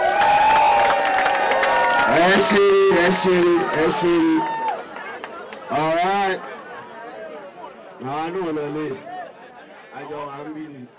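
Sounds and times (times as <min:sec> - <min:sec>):
crowd at a gathering clapping and cheering for its host: 0:00.0 - 0:06.7
speech: 0:02.2 - 0:04.6, 0:08.0 - 0:09.1, 0:10.0 - 0:10.9.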